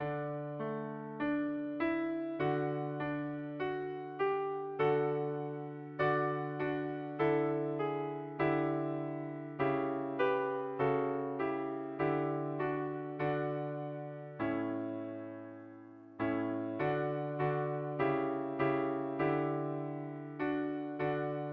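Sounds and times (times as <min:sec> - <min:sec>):
piano piece: 0:00.0 - 0:21.5.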